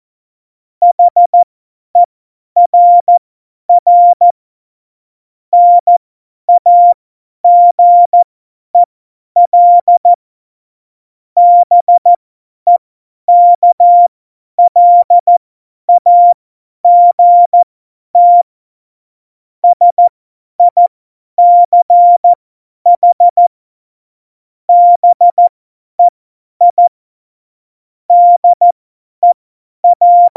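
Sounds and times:
CW Morse code beeps: 0:00.9 - 0:01.4, 0:02.7 - 0:03.2, 0:03.8 - 0:04.3, 0:05.6 - 0:08.2, 0:09.5 - 0:10.1, 0:11.4 - 0:17.6, 0:18.2 - 0:18.5, 0:19.6 - 0:20.8, 0:21.4 - 0:23.4, 0:24.7 - 0:26.9, 0:28.1 - 0:30.3.

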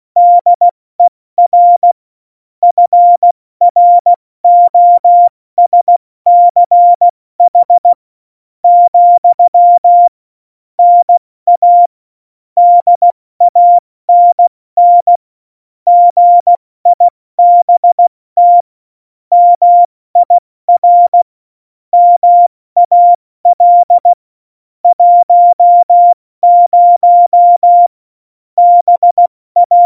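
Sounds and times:
CW Morse code beeps: 0:00.2 - 0:02.0, 0:02.6 - 0:08.0, 0:08.7 - 0:10.1, 0:10.8 - 0:11.9, 0:12.6 - 0:15.2, 0:15.9 - 0:18.7, 0:19.3 - 0:21.2, 0:22.0 - 0:24.2, 0:24.9 - 0:27.9, 0:28.6 - 0:29.8.

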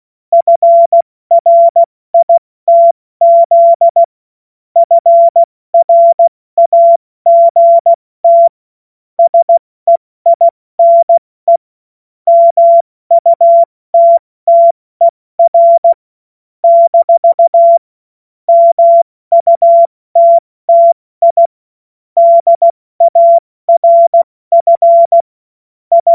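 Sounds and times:
CW Morse code beeps: 0:00.3 - 0:04.1, 0:04.8 - 0:08.6, 0:09.2 - 0:11.6, 0:12.3 - 0:14.8, 0:15.4 - 0:16.0, 0:16.6 - 0:17.8, 0:18.5 - 0:21.5, 0:22.2 - 0:25.3, 0:25.9 - 0:26.1.

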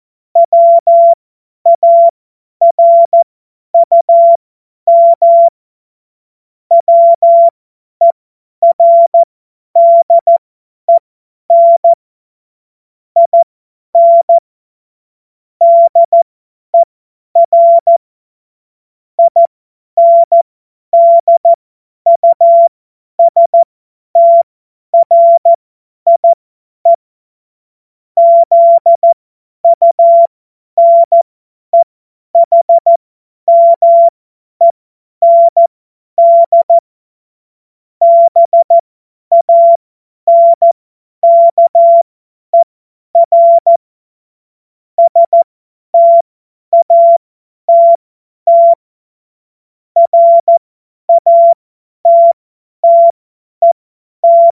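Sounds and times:
CW Morse code beeps: 0:00.4 - 0:03.2, 0:03.8 - 0:05.5, 0:06.7 - 0:12.0, 0:13.2 - 0:14.4, 0:15.6 - 0:18.0, 0:19.2 - 0:20.4, 0:21.0 - 0:23.6, 0:24.2 - 0:27.0, 0:28.2 - 0:31.2, 0:31.8 - 0:36.8, 0:38.0 - 0:43.8, 0:45.0 - 0:48.8, 0:50.0 - 0:54.5.

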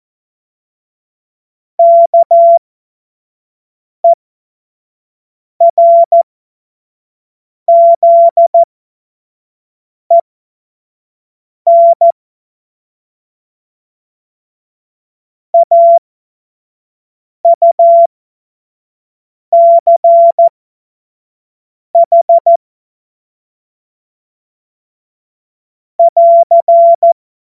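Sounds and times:
CW Morse code beeps: 0:01.8 - 0:02.6, 0:05.6 - 0:06.2, 0:07.7 - 0:08.7, 0:11.7 - 0:12.2, 0:15.6 - 0:16.0, 0:17.5 - 0:18.1, 0:19.6 - 0:20.5, 0:22.0 - 0:22.6, 0:26.0 - 0:27.2.

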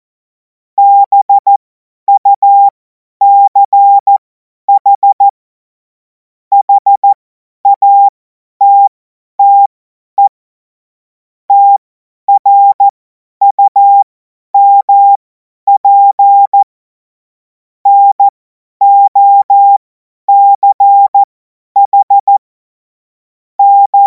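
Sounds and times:
CW Morse code beeps: 0:00.8 - 0:04.2, 0:04.8 - 0:05.3, 0:06.5 - 0:10.3, 0:11.5 - 0:12.9, 0:13.5 - 0:16.7, 0:17.9 - 0:22.4, 0:23.6 - 0:24.0.

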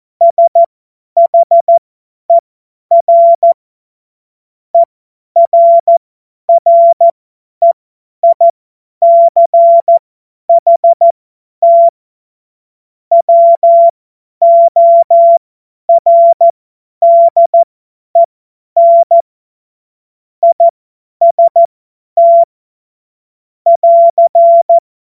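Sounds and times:
CW Morse code beeps: 0:00.2 - 0:03.6, 0:04.8 - 0:11.9, 0:13.1 - 0:19.2, 0:20.4 - 0:22.5, 0:23.7 - 0:24.8.

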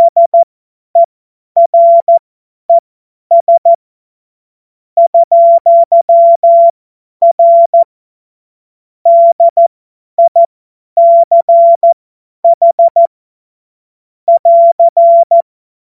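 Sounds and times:
morse code beeps: 0:00.0 - 0:02.2, 0:03.3 - 0:03.8, 0:05.0 - 0:07.9, 0:09.1 - 0:13.1, 0:14.3 - 0:15.4.

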